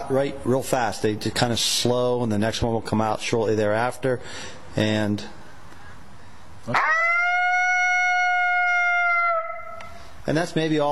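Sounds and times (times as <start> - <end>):
speech: 0.1 - 5.4, 6.6 - 6.9, 10.3 - 10.9
long lonesome howl: 6.7 - 9.8.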